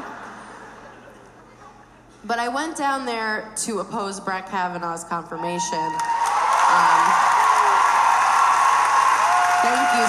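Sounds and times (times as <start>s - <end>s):
speech: 2.2s - 6.2s, 6.8s - 7.4s, 9.6s - 10.0s
audience applause: 6.0s - 10.0s.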